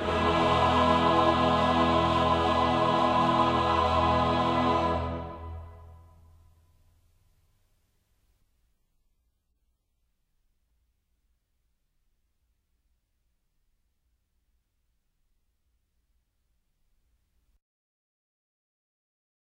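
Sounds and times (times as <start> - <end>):
chorus singing: 0.0 - 6.0.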